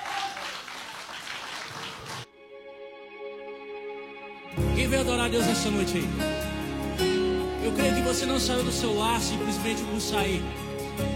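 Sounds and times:
audience applause: 0.0 - 2.3
speech: 4.5 - 6.5, 7.6 - 11.1.

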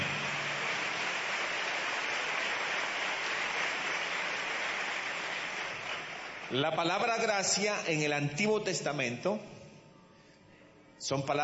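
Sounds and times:
audience applause: 0.0 - 6.6
speech: 6.5 - 9.6, 11.0 - 11.4.

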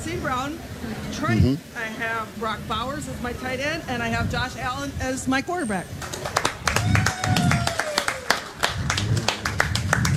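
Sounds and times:
speech: 0.2 - 6.4
applause: 6.0 - 10.1.

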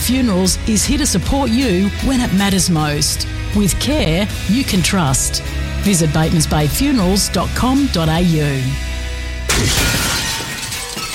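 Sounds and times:
speech: 0.1 - 8.9, 9.6 - 10.0
glass shattering: 9.5 - 11.1.

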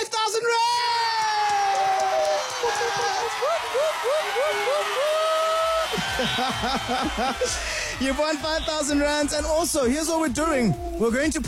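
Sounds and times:
group cheering with whoops and high-pitched shouts: 0.5 - 11.4
laughter: 1.9 - 9.6
speech: 3.0 - 5.3, 5.9 - 11.4.

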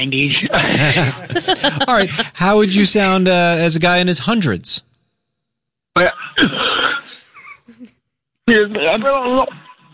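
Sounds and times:
speech: 0.0 - 4.9, 6.0 - 6.2, 8.5 - 9.9
laughter: 0.4 - 2.8
person coughing: 0.7 - 2.4, 6.0 - 7.8.

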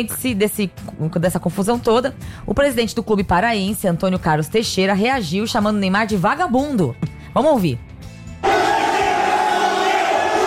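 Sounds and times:
speech: 0.0 - 8.5
crowd shouting in uproar: 8.4 - 10.4.

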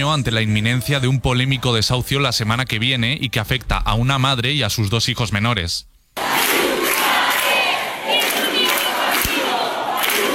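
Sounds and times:
speech: 0.0 - 5.9
protest crowd chanting slogans: 6.2 - 10.3.

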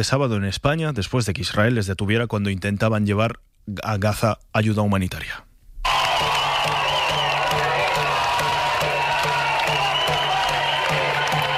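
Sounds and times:
speech: 0.0 - 5.5
crowd applauding at airport: 5.9 - 11.5.

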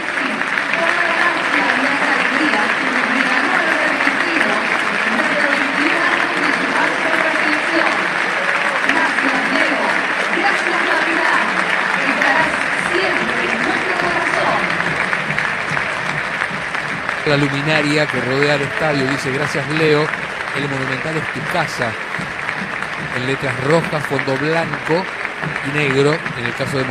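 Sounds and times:
cheering voices: 0.0 - 26.8
huge stadium crowd applauding: 0.0 - 26.8
speech: 17.3 - 22.3, 23.1 - 26.8.

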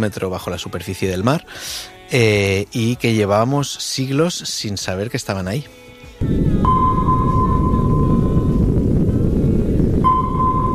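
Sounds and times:
speech: 0.0 - 6.8
sonar ping: 6.6 - 8.7, 10.0 - 10.7.

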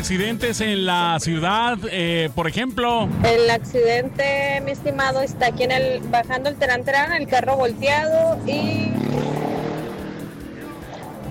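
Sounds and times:
speech: 0.0 - 9.3
motorcycles passing along a city street: 2.8 - 11.2.

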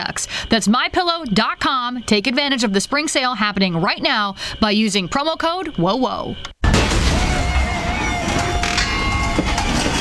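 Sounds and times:
speech: 0.1 - 6.6
noisy failing garage door: 6.6 - 10.0.

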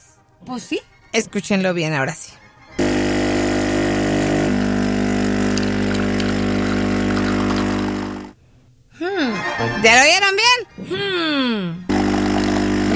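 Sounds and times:
speech: 0.4 - 2.4, 9.6 - 11.8
coffee machine brewing: 2.8 - 8.4, 11.9 - 12.9.

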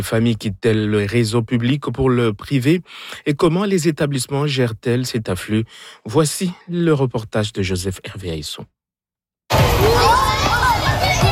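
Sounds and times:
speech: 0.0 - 8.8
children playing at recess in a private school schoolyard: 9.5 - 11.2.

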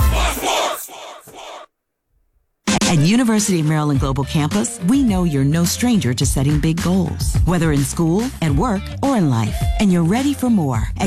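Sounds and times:
Penn State football crowd roaring and chanting: 0.0 - 1.7
speech: 2.9 - 11.0.

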